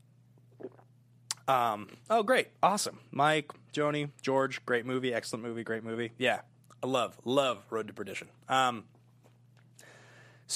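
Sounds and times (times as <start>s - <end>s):
low steady hum: 0.0s - 10.5s
sipping water: 0.4s - 2.1s
speech: 1.5s - 8.9s.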